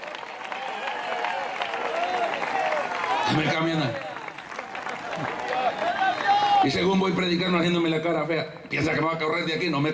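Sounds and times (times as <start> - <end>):
audience applause: 0.0 - 6.7
speech: 3.3 - 4.1, 6.6 - 9.9.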